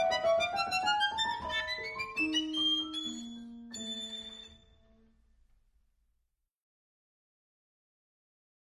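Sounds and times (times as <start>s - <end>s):
violin and piano melodies: 0.0s - 4.7s.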